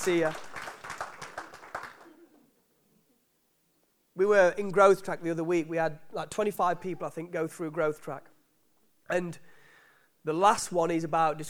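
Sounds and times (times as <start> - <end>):
speech: 0.0 - 0.5, 4.2 - 8.3, 9.1 - 9.6, 10.2 - 11.4
round of applause: 0.0 - 2.2.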